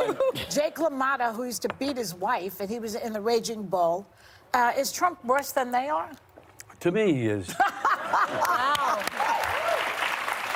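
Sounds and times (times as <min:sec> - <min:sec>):
speech: 0:00.1 - 0:09.2
laughter: 0:07.5 - 0:09.4
audience clapping: 0:08.2 - 0:10.5.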